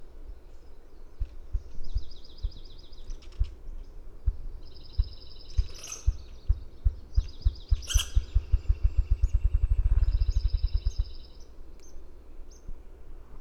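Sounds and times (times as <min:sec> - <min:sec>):
grouse drumming: 0:04.2 - 0:11.2
other birds singing high trills: 0:04.9 - 0:11.4.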